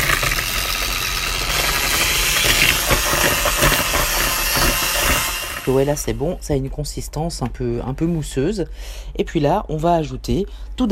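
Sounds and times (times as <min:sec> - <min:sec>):
beating eggs and sugar for chocolate batter: 0:00.0 - 0:06.2
speech: 0:05.7 - 0:10.9.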